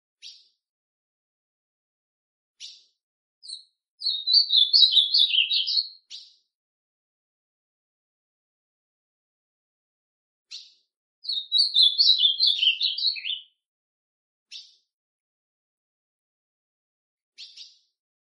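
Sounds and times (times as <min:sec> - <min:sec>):
ultramarine grosbeak song: 0:00.2 - 0:00.6, 0:02.6 - 0:06.5, 0:10.5 - 0:13.6, 0:17.4 - 0:18.0.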